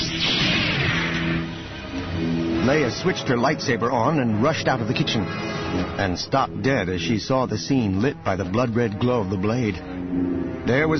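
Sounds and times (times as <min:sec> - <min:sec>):
Star Wars blaster shot sound effect: 0:00.0 - 0:02.5
speech: 0:02.7 - 0:10.9.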